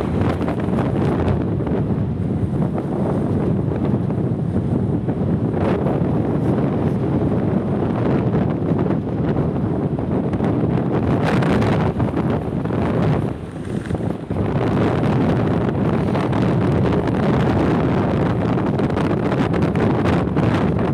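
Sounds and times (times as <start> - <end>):
howling whistling wind under a raincoat during a storm: 0.0 - 20.9
raincoat flapping in a storm: 12.4 - 14.5.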